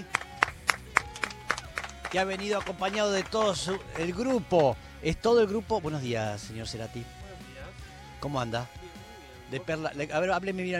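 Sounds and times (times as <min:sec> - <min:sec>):
applause: 0:00.0 - 0:04.8
speech: 0:02.1 - 0:07.2, 0:08.2 - 0:08.8, 0:09.5 - 0:10.7.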